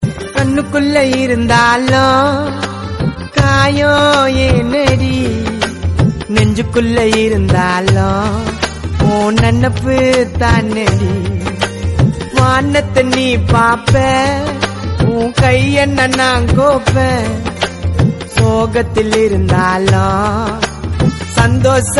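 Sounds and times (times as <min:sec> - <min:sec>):
Tamil gana song remix: 0:00.0 - 0:21.9.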